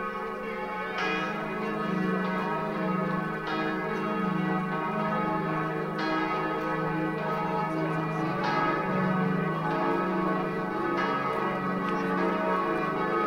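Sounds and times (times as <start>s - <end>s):
big clock bells in Salzburg: 0.0s - 13.2s.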